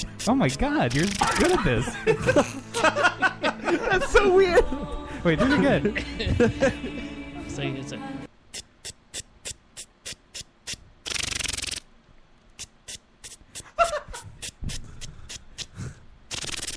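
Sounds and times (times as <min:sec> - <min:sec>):
voice imitating a lawn sprinkler: 0:00.0 - 0:01.7, 0:16.3 - 0:16.7
speech: 0:00.0 - 0:07.0, 0:07.6 - 0:08.2
laughter: 0:00.9 - 0:07.2, 0:13.8 - 0:14.3.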